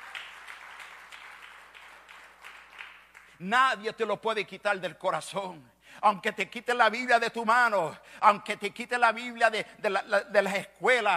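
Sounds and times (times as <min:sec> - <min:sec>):
audience applause: 0:00.0 - 0:03.3
speech: 0:03.4 - 0:11.1.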